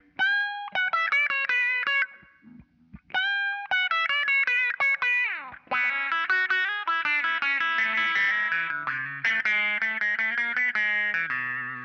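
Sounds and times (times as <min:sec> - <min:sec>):
electric guitar loop: 0:00.0 - 0:11.8.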